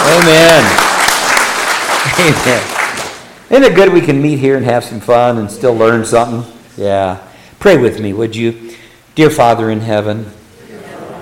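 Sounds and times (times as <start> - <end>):
audience clapping: 0.0 - 3.3
speech: 2.1 - 2.8, 3.5 - 10.4.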